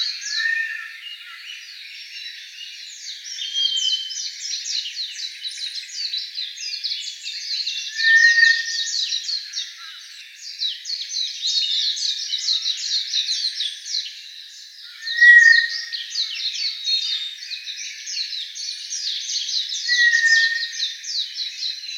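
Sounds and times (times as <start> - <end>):
White's thrush long whistled tone: 0.0 - 1.3, 7.6 - 9.4, 15.0 - 16.3, 19.7 - 21.1
chorus of chirping: 0.0 - 21.9.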